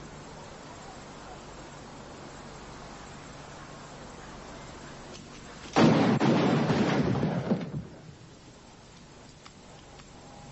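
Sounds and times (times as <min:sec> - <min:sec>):
gun firing a loud booming blast: 0:05.8 - 0:08.1.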